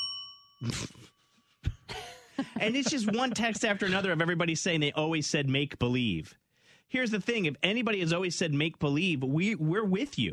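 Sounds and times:
bell ding sound effect: 0.0 - 1.5
speech: 0.6 - 1.1, 2.6 - 10.3
laughter: 1.6 - 4.4.

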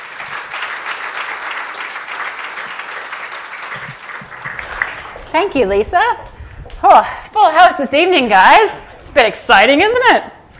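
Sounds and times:
audience applause welcoming a speaker: 0.0 - 5.7
speech: 5.3 - 10.3.

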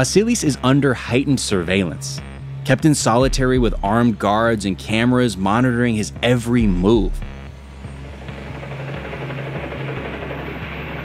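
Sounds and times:
speech: 0.0 - 7.3
helicopter blades thumping while hovering overhead: 6.2 - 11.0.

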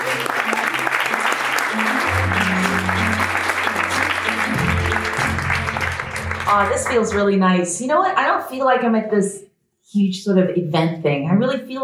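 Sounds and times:
audience round of applause: 0.0 - 7.4
speech: 6.5 - 11.8.

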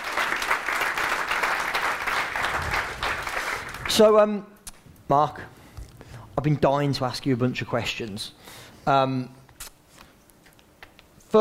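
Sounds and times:
audience applause: 0.0 - 4.2
speech: 4.0 - 4.5, 5.1 - 5.6, 6.4 - 9.4.

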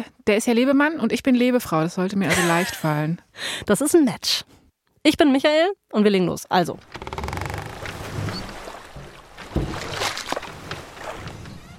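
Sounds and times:
speech: 0.3 - 7.2
laughter: 2.3 - 3.0
oars paddling rowboat: 6.8 - 11.7
small waves lapping against a rowboat: 6.8 - 11.7.

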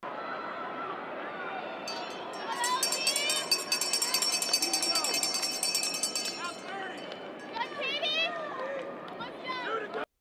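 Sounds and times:
noisy crowd chatter and cheering: 0.0 - 10.1
last-lap bell clanging: 1.9 - 7.6.

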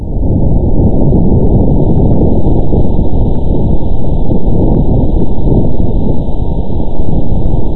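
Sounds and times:
pitch-shifted recording of vibrations on Mars: 0.0 - 7.7.

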